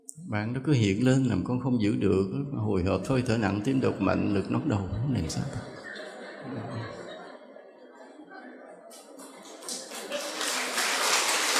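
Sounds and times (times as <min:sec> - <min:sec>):
speech: 0:00.3 - 0:05.8, 0:06.4 - 0:07.0
laughter: 0:02.7 - 0:11.5
audience clapping: 0:09.0 - 0:11.5.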